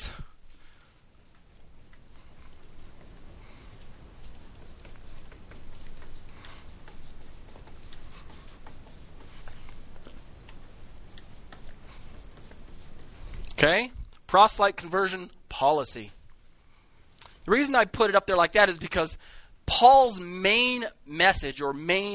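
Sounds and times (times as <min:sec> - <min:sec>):
writing on a board during a lecture: 0:01.2 - 0:13.4
speech: 0:13.6 - 0:16.2, 0:17.5 - 0:22.1.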